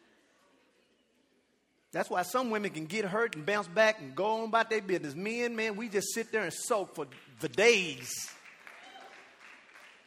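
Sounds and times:
speech: 1.9s - 8.4s
scattered claps: 6.9s - 10.0s.

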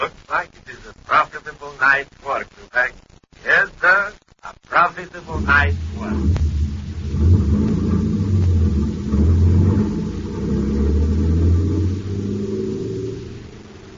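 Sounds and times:
speech: 0.0s - 4.0s
big truck engine rumbling as it drives: 5.0s - 13.9s.

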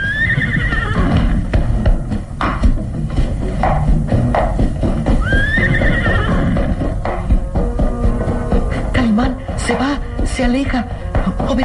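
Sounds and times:
horse neighing: 0.0s - 1.5s, 5.2s - 6.8s
horse hooves: 0.0s - 11.6s.

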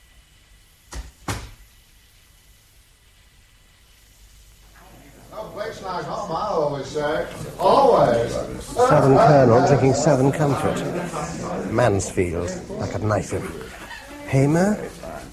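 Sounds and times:
firmer thud of a door shutting: 0.9s - 1.6s
laughter: 5.4s - 15.3s
speech: 5.8s - 15.0s.

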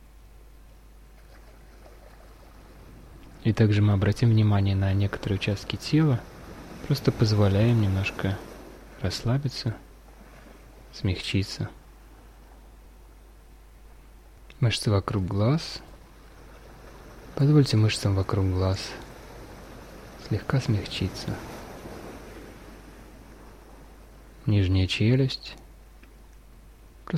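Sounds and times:
ocean waves: 0.0s - 27.1s.

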